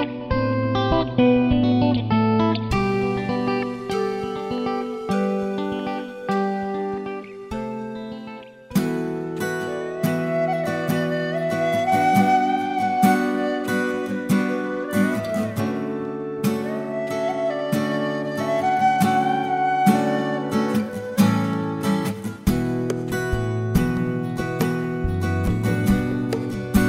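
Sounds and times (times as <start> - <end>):
ambient guitar: 0.0 - 26.8.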